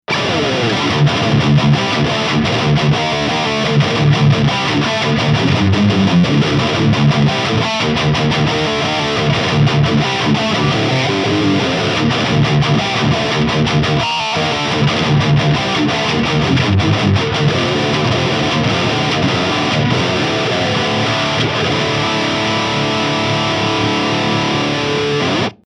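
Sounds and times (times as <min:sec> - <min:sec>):
ESP LTD AA 1 electric guitar high gain: 0:00.0 - 0:25.6.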